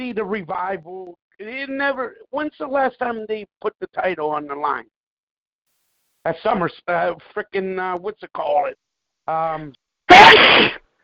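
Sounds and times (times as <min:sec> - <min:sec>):
speech: 0:00.0 - 0:05.0, 0:06.2 - 0:10.8
sneeze: 0:10.1 - 0:10.8.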